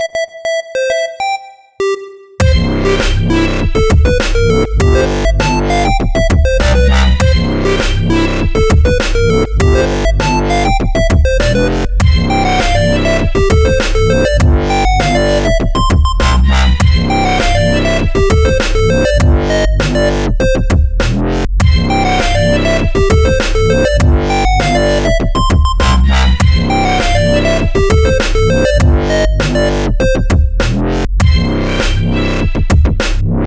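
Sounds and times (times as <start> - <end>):
dubstep music: 0.0 - 33.4.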